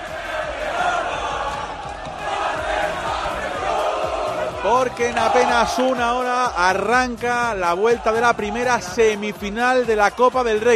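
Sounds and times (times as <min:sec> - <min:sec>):
football stadium crowd cheering: 0:00.0 - 0:10.7
speech: 0:04.7 - 0:10.7.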